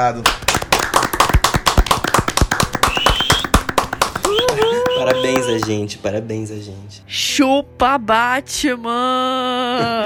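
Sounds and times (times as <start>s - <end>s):
speech: 0.0s - 0.5s, 5.0s - 10.0s
hands clapping: 0.0s - 5.8s.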